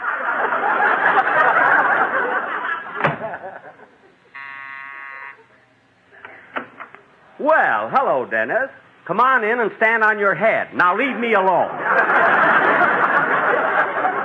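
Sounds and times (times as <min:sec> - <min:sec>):
loud laughter: 0:00.0 - 0:04.4, 0:11.6 - 0:14.2
doorbell buzzing ring: 0:04.4 - 0:05.4
speech: 0:07.4 - 0:12.1.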